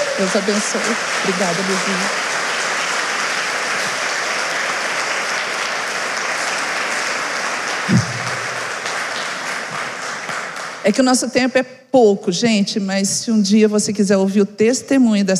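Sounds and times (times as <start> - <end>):
round of applause: 0.0 - 10.9
speech: 0.2 - 2.4, 10.8 - 15.3.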